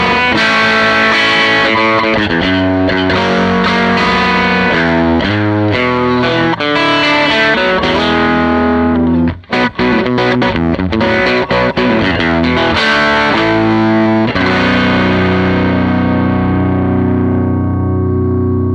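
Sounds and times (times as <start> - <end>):
tweed guitar amplifier tone: 0.0 - 18.7.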